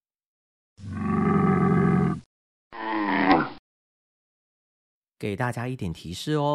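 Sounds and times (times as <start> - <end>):
camel grunting: 0.8 - 3.6
speech: 5.2 - 6.5.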